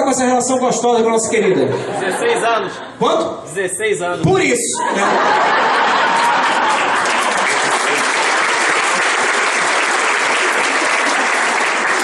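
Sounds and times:
speech: 0.1s - 5.8s
laughter: 1.2s - 3.0s, 4.8s - 9.7s
audience applause: 5.1s - 12.0s.

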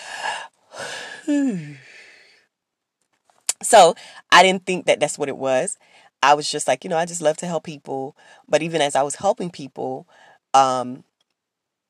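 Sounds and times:
deep breath with sighing exhale: 0.0s - 2.4s, 8.2s - 8.5s, 10.1s - 10.4s
speech: 1.3s - 1.9s, 3.7s - 11.1s.

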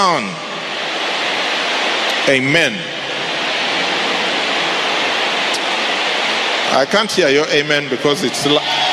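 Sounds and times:
speech: 0.0s - 0.5s, 2.3s - 3.0s, 6.7s - 8.8s
heavy rain: 0.6s - 7.5s.

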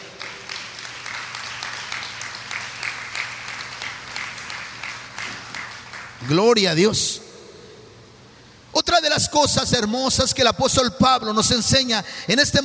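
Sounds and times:
audience applauding: 0.0s - 6.5s
speech: 6.2s - 7.2s, 9.0s - 12.6s.

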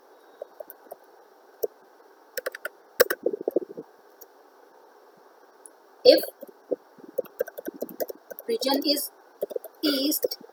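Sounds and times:
typing a query on a computer keyboard: 2.4s - 3.6s, 7.2s - 8.5s, 9.4s - 10.4s
speech: 6.0s - 6.4s, 8.5s - 9.2s, 9.8s - 10.5s.

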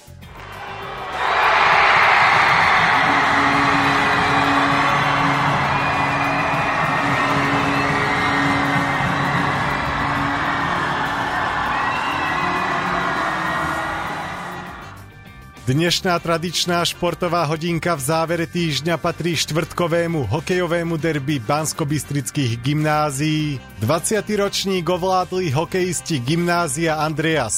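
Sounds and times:
fans cheering a goal in hockey stands: 0.3s - 15.1s
speech: 15.7s - 27.5s.

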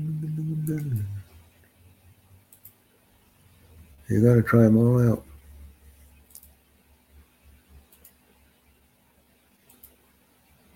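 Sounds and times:
low hum: 0.0s - 10.7s
speech: 0.7s - 1.2s, 4.1s - 5.3s
computer mouse clicking: 2.5s - 2.8s, 6.2s - 6.6s, 7.8s - 8.3s, 9.6s - 10.0s.

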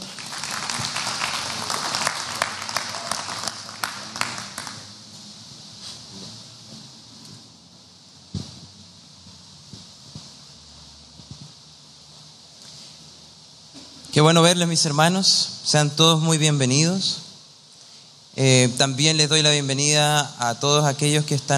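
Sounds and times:
audience applause: 0.0s - 4.9s
speech: 14.2s - 17.2s, 18.4s - 21.5s.

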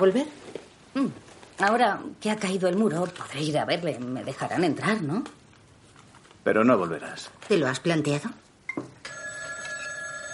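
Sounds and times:
speech: 0.0s - 0.4s, 1.0s - 5.4s, 6.4s - 8.9s
telephone ringing: 9.0s - 10.3s.

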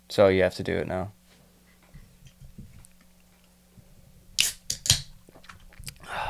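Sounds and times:
speech: 0.1s - 1.2s
drink being cracked open: 4.4s - 5.6s.

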